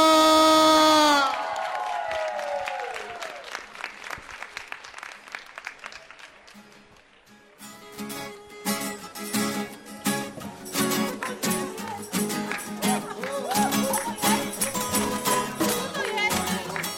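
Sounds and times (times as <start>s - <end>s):
cheering: 0.0s - 4.1s, 12.8s - 16.9s
applause: 1.0s - 7.8s, 11.0s - 16.9s.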